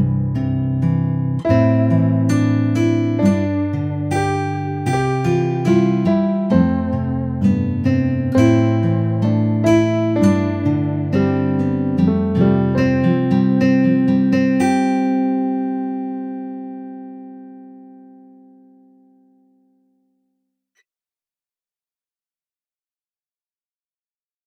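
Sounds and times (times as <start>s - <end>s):
country music: 0.0s - 18.2s.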